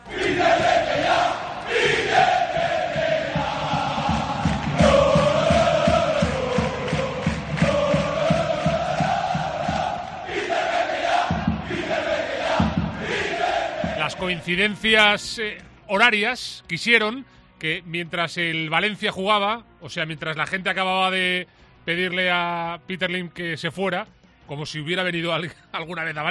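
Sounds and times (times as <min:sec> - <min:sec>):
football crowd chanting in protest: 0:00.0 - 0:14.8
speech: 0:14.3 - 0:26.3.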